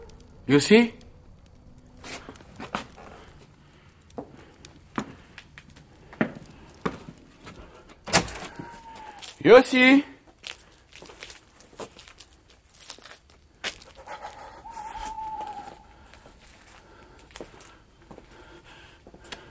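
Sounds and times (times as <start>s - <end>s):
speech: 0.5s - 1.0s, 9.5s - 10.1s
dog whimpering: 14.5s - 15.8s.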